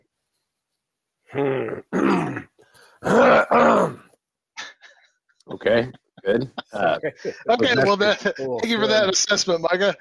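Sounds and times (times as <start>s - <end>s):
speech: 1.3s - 1.9s, 5.7s - 9.9s
throat clearing: 1.3s - 2.5s.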